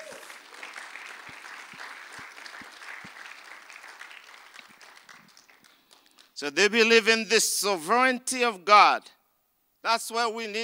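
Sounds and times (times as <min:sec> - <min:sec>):
crowd applause: 0:00.0 - 0:06.3
speech: 0:06.4 - 0:09.2, 0:09.8 - 0:10.6.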